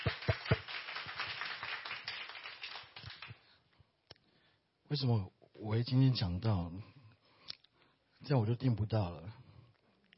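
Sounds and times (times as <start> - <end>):
audience clapping in welcome: 0.0 - 3.6
speech: 4.9 - 7.0, 8.2 - 9.4.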